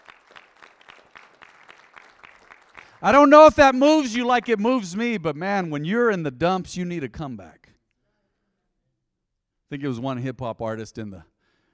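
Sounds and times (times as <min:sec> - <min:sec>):
audience applause: 0:00.0 - 0:04.3
speech: 0:03.0 - 0:07.6, 0:09.7 - 0:11.3.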